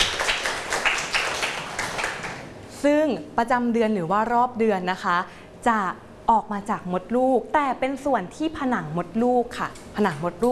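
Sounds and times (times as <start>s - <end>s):
children clapping in a classroom: 0.0s - 2.5s
speech: 2.8s - 10.5s.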